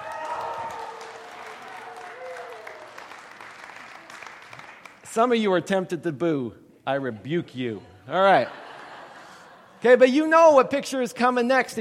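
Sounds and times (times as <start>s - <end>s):
audience cheering: 0.0s - 4.6s
speech: 5.2s - 8.6s, 9.8s - 11.7s
laughter: 7.1s - 9.8s.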